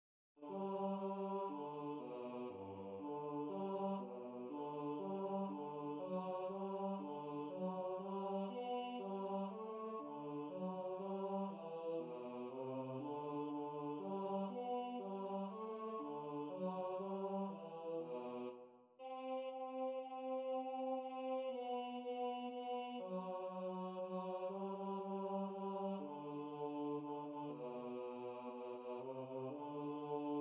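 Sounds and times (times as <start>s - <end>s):
bass choir singing: 0.4s - 30.3s.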